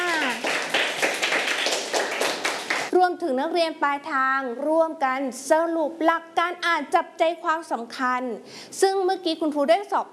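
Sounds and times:
students clapping for a classmate in a classroom: 0.0 - 2.9
speech: 3.2 - 10.1.

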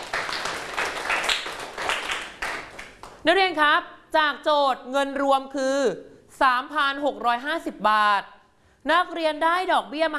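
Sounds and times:
group of students clapping in classroom: 0.0 - 3.2
speech: 3.2 - 10.1.

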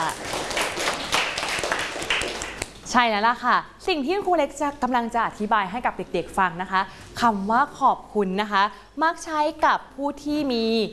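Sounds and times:
children clapping hands for a classmate: 0.0 - 2.8
speech: 2.9 - 10.9.

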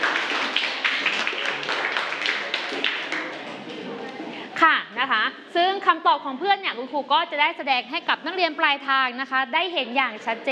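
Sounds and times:
classroom applause: 0.0 - 3.8
speech: 5.0 - 10.5.

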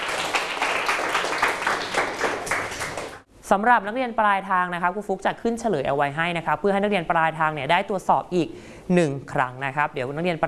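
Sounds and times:
group of students clapping in a classroom: 0.0 - 3.2
speech: 3.5 - 10.4.

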